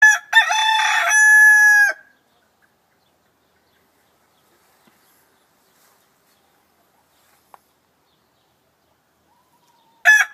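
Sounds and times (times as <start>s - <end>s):
rooster crowing: 0.0s - 2.1s, 9.6s - 10.3s.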